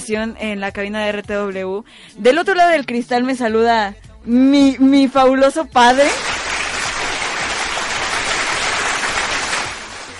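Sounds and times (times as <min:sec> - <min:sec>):
speech: 0:00.0 - 0:06.3
applause: 0:06.0 - 0:10.1.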